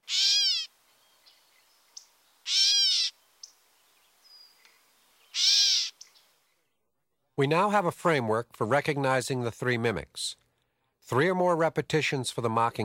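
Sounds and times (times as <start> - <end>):
catbird cat-like meow call: 0.0 - 0.7, 2.4 - 3.2, 5.3 - 6.1
speech: 7.4 - 10.4, 11.1 - 12.8.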